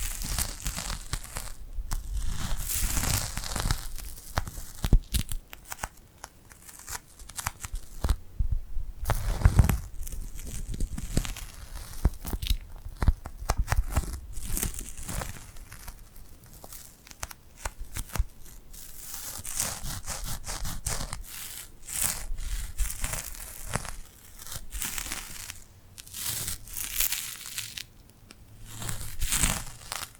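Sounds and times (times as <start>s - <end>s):
glued hands rubbing and pulling apart: 0.0s - 8.2s, 9.0s - 30.1s
soft low thump: 8.4s - 9.0s.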